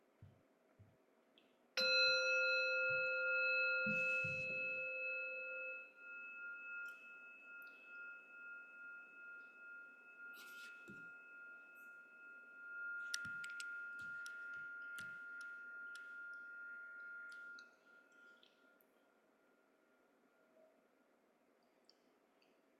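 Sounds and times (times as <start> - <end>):
meditation bell ringing: 1.8 - 18.3.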